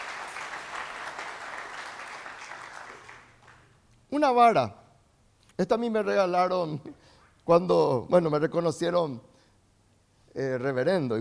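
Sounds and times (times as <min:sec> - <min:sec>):
crowd applauding: 0:00.0 - 0:03.8
speech: 0:04.1 - 0:04.8, 0:05.6 - 0:09.3, 0:10.4 - 0:11.1.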